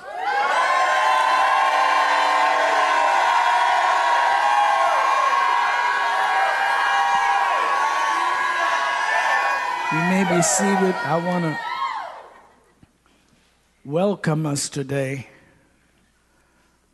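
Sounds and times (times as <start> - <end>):
church congregation shouting praise: 0.0 - 12.4
whoops and cheers from a congregation: 0.0 - 12.6
speech: 10.2 - 11.7, 13.9 - 15.3.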